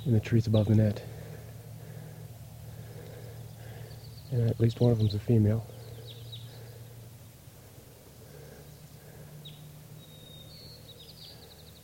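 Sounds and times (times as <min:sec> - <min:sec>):
speech: 0:00.0 - 0:01.2, 0:04.3 - 0:05.7
steady low hum: 0:00.0 - 0:11.8
wild crossbills chirping in trees: 0:00.0 - 0:11.8.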